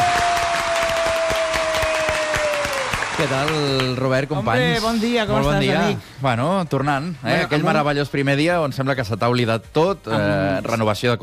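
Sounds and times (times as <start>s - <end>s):
studio audience applause: 0.0s - 4.0s
speech: 3.2s - 11.2s.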